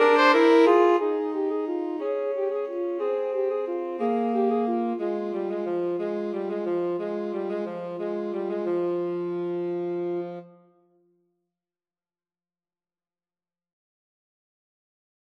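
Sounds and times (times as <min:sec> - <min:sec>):
alto saxophone: 0:00.0 - 0:10.8.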